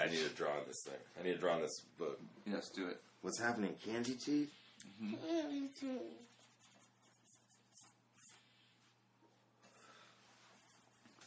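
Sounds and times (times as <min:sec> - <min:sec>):
speech: 0:00.1 - 0:06.4
pen or marker scratching across pages of a book while drawing: 0:06.2 - 0:08.4.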